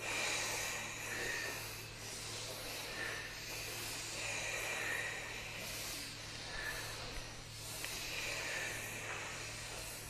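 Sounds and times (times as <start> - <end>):
forceful nasal breaths in a rhythmic breathing exercise: 0.0 - 10.0.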